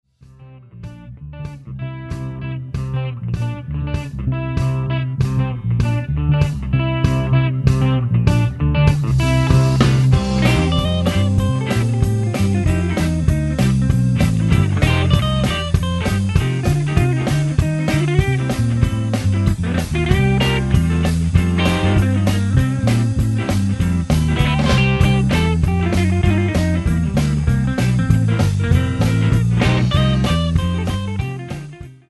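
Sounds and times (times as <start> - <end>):
swing music: 0.2 - 32.0.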